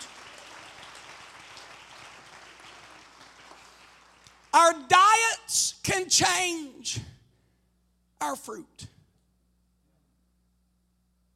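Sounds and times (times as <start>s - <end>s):
audience clapping: 0.0s - 5.3s
speech: 4.6s - 7.1s, 8.2s - 8.9s.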